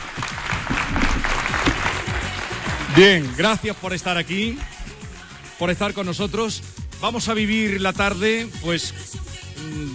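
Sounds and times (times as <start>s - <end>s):
studio audience applause at a live Andalusian radio show: 0.0s - 4.8s
speech: 3.0s - 4.7s, 5.6s - 9.9s.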